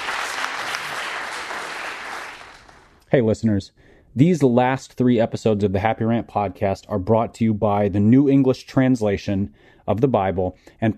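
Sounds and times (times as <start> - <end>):
audience applause for a guest at a live show: 0.0 - 3.0
speech: 3.1 - 10.9.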